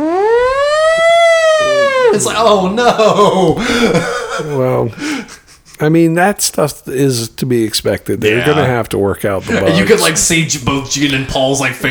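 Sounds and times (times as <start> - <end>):
firehouse siren going off: 0.0 - 2.6
laughter: 1.6 - 5.9, 8.2 - 10.4
speech: 2.1 - 5.1, 5.8 - 11.8.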